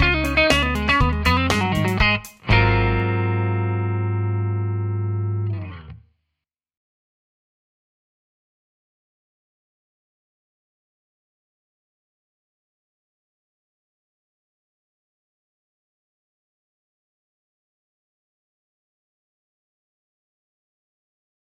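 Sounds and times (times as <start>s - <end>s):
clean electric guitar on the neck pickup: 0.0s - 6.0s.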